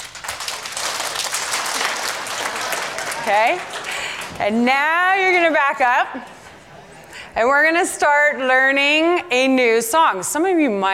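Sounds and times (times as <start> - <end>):
group clapping: 0.0 - 5.0
speech: 3.3 - 6.4, 7.4 - 10.9.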